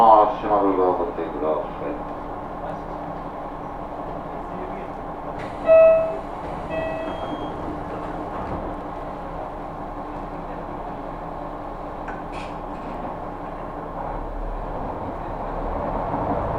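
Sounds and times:
KiHa 200 and 220 train running on the Kyudai Main Line: 0.0s - 16.5s
two-tone chime: 5.7s - 7.3s.

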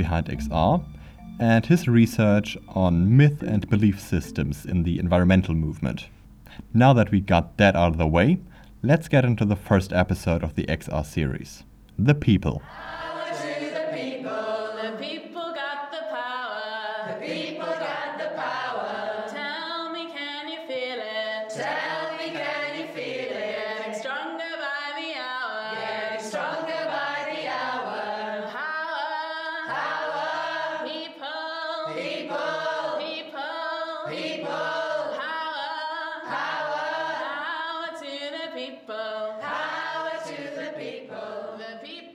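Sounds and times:
speech: 0.0s - 13.0s
choir singing a protest chant: 12.7s - 42.1s.

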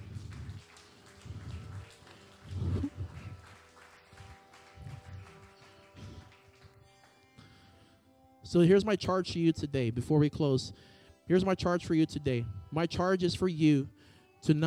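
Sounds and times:
audience applause: 0.0s - 7.2s
speech: 8.5s - 14.6s.

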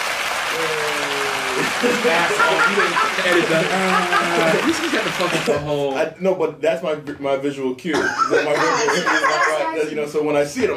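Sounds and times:
applause sound effect: 0.0s - 5.6s
voices cheering: 0.0s - 5.6s
laughter: 0.5s - 5.6s, 8.0s - 10.0s
speech: 1.8s - 10.7s.

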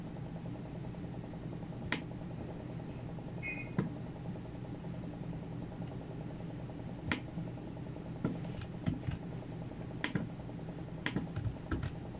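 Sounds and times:
steady low fan hum of a computer: 0.0s - 12.1s
high beep: 3.4s - 3.8s
keyboard or mouse clicks: 11.0s - 12.0s.

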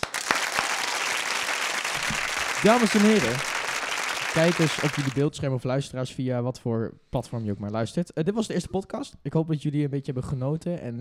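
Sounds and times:
applause: 0.0s - 5.3s
speech: 2.6s - 3.5s, 4.4s - 10.9s.

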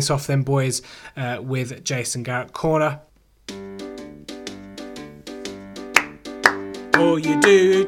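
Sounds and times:
speech: 0.0s - 3.1s, 7.0s - 7.8s
hand clapping: 5.9s - 7.7s.

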